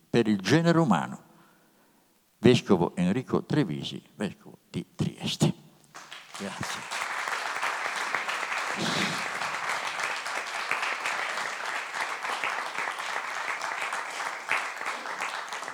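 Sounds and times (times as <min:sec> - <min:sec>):
speech: 0:00.1 - 0:01.2, 0:02.4 - 0:05.6, 0:06.4 - 0:06.9
audience applause: 0:06.0 - 0:15.7.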